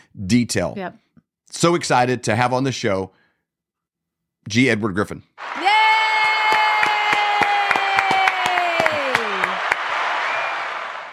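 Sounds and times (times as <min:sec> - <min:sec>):
speech: 0:00.2 - 0:03.2, 0:04.4 - 0:05.6
applause and cheering soundtrack: 0:05.4 - 0:11.1.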